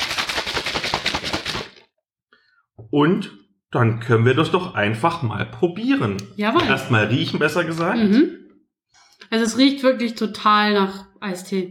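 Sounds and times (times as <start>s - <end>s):
shaker bottle with powder drink being shaken: 0.0s - 1.9s
speech: 2.9s - 8.4s, 9.3s - 11.6s.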